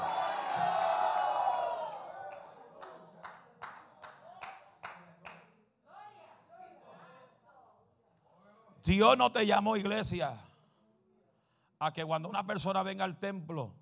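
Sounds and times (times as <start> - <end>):
audience shouting glory to God: 0.0 - 3.4
rhythmic group clapping: 1.6 - 5.6
speech: 8.9 - 10.5, 11.8 - 13.8.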